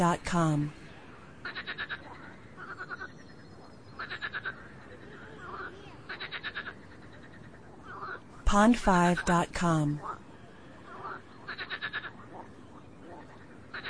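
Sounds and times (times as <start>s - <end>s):
speech: 0.0s - 0.8s, 8.5s - 10.1s
frog calling in pulsed bursts: 1.0s - 8.3s, 10.8s - 13.8s.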